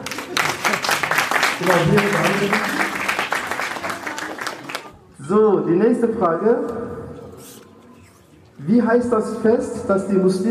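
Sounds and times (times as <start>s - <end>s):
crowd clapping: 0.0s - 5.0s
speech: 1.6s - 2.9s, 5.3s - 7.0s, 8.6s - 10.4s.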